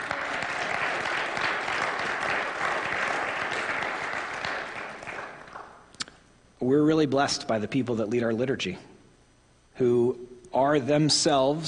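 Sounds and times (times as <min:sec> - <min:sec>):
audience applauding: 0:00.0 - 0:05.9
speech: 0:06.6 - 0:08.9, 0:09.8 - 0:11.6.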